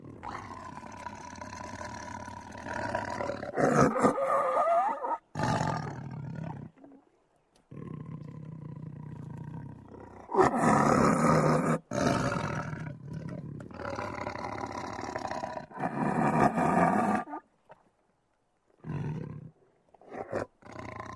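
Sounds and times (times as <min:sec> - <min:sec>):
tiger snarling: 0:00.0 - 0:06.8, 0:07.7 - 0:17.4.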